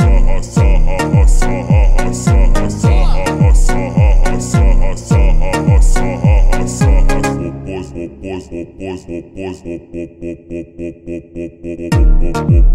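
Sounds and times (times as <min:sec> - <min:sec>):
phonk montagem music: 0:00.0 - 0:08.6, 0:11.9 - 0:12.7.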